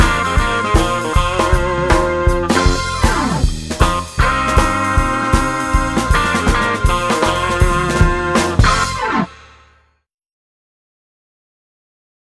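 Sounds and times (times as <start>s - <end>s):
blues jazz music: 0.0s - 9.7s.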